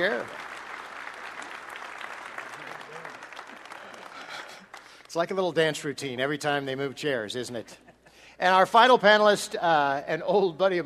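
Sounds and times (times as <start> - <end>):
speech: 0.0 - 0.4, 5.2 - 7.8, 8.4 - 10.8
audience applause: 0.0 - 5.3.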